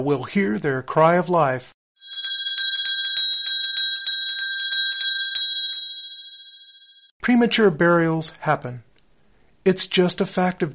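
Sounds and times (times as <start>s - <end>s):
speech: 0.0s - 1.8s, 7.2s - 8.9s, 9.6s - 10.7s
tiny bell on a gravestone rung from inside a coffin: 2.0s - 7.1s.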